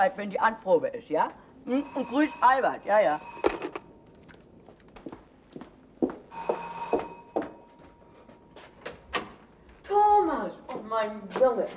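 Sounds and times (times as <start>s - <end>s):
speech: 0.0s - 3.8s, 10.9s - 11.7s
bell ringing: 1.7s - 4.0s, 6.3s - 8.1s.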